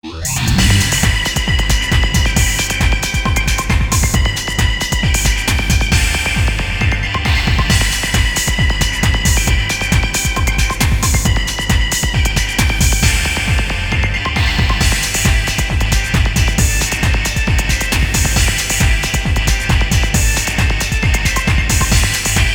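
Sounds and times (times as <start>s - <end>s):
guitar: 0.2s - 22.5s.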